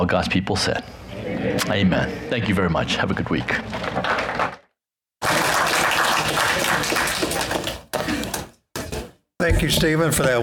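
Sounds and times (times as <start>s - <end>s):
speech: 0.0s - 4.3s, 9.5s - 10.4s
audience applause: 5.2s - 7.8s.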